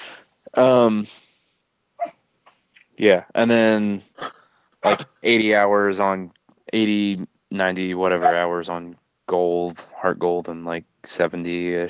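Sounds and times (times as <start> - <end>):
speech: 0.6 - 1.3, 3.0 - 11.8
dog barking: 8.2 - 8.5.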